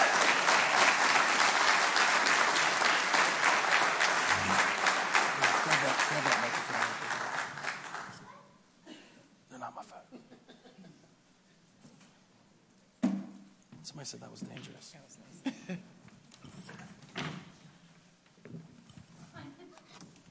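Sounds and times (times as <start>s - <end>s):
audience applause at Hope Community Church: 0.0s - 8.3s.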